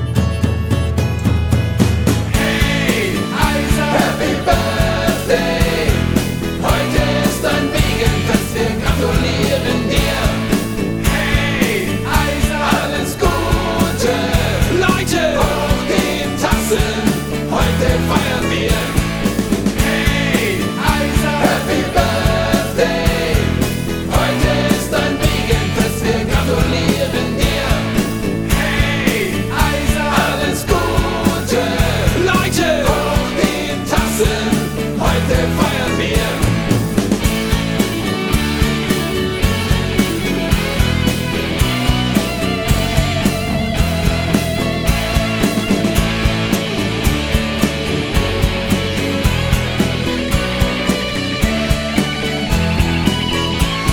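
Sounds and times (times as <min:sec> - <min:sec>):
birthday song: 0:00.1 - 0:53.9.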